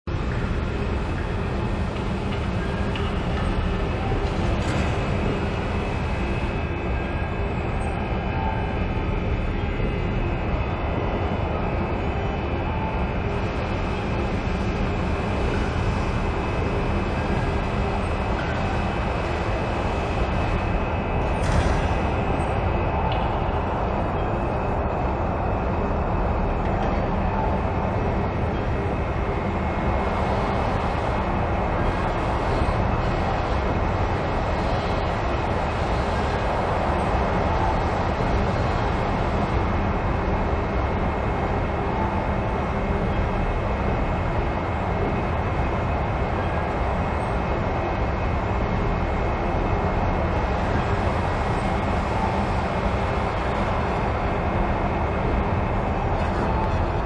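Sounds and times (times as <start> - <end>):
indoor facility ambience: 0.0 - 57.0.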